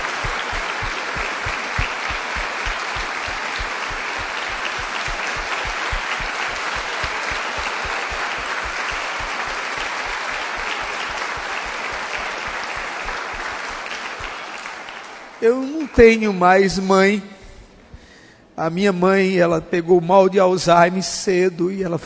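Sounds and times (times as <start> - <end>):
audience applause: 0.0 - 15.8
speech: 15.4 - 17.3, 18.6 - 22.0.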